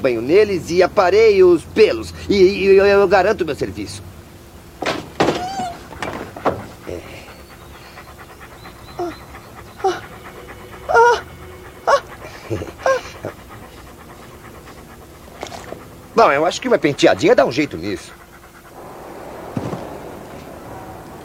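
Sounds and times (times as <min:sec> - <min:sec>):
speech: 0:00.0 - 0:04.1, 0:16.2 - 0:18.2
dogs panting: 0:00.0 - 0:21.2
dogs whimpering: 0:05.2 - 0:21.2.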